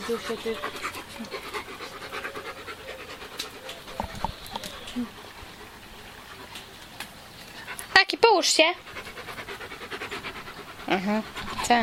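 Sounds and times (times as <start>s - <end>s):
German shepherd dog panting: 0.0s - 11.8s
speech: 0.1s - 1.4s, 5.0s - 5.2s, 8.3s - 9.0s, 10.9s - 11.8s.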